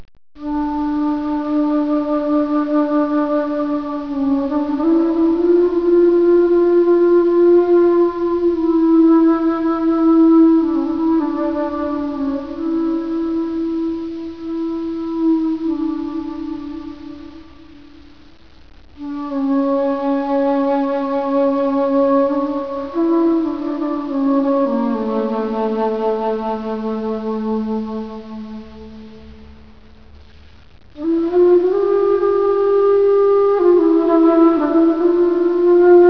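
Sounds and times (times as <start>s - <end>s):
flute: 0.4s - 36.0s.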